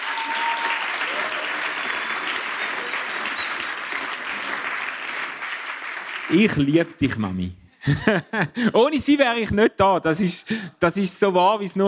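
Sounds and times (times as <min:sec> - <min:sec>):
audience applause: 0:00.0 - 0:07.0
speech: 0:06.3 - 0:11.8
laughter: 0:07.8 - 0:09.7.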